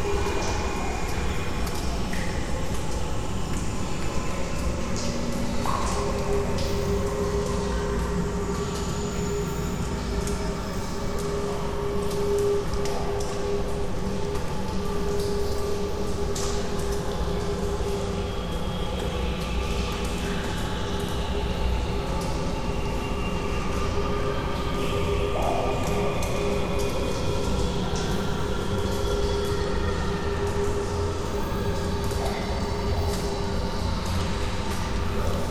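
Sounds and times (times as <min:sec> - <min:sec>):
cave ambience: 0:00.0 - 0:35.4.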